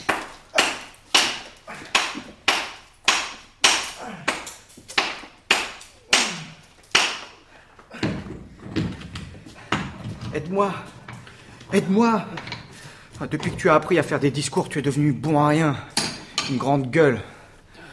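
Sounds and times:
hammer blows knocking the head off a sculpture: 0:00.0 - 0:06.3
speech: 0:10.5 - 0:10.9, 0:11.7 - 0:12.6, 0:13.2 - 0:15.9, 0:16.5 - 0:17.3.

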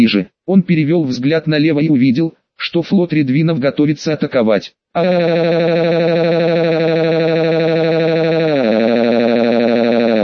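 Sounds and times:
speech: 0:00.0 - 0:06.6
war horn signalling attack: 0:05.0 - 0:10.2.

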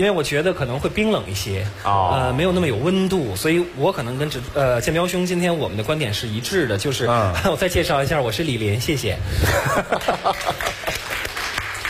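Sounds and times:
speech: 0:00.0 - 0:10.8
laughter: 0:09.4 - 0:11.3
sparse audience applause at a talk event: 0:10.3 - 0:11.8.

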